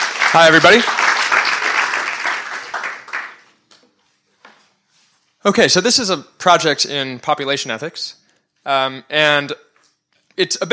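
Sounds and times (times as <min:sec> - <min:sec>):
audience round of applause: 0:00.0 - 0:03.5
speech: 0:00.3 - 0:01.1, 0:05.4 - 0:09.7, 0:10.4 - 0:10.7.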